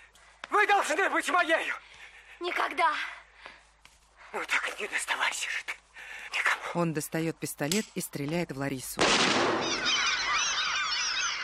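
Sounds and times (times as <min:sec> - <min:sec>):
speech: 0:00.6 - 0:03.2, 0:04.3 - 0:05.8, 0:06.6 - 0:10.1
seagulls crying: 0:09.5 - 0:11.4.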